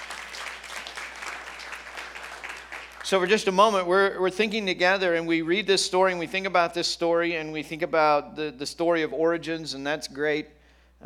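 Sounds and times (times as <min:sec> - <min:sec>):
audience applause: 0:00.0 - 0:03.5
speech: 0:03.1 - 0:11.0.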